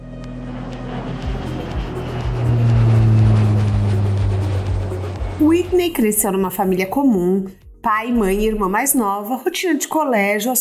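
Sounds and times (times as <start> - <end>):
private jet taking off: 0.0 - 7.0
speech: 5.5 - 10.5.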